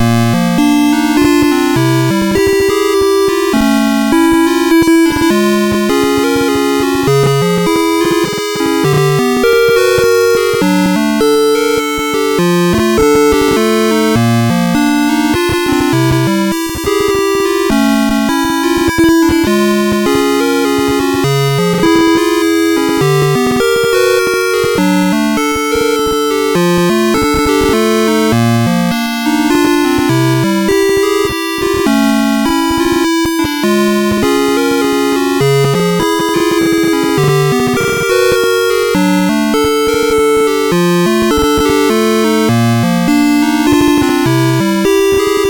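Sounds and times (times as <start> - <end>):
music box melody on SID MOS6581R4 chip: 0.0 - 45.4.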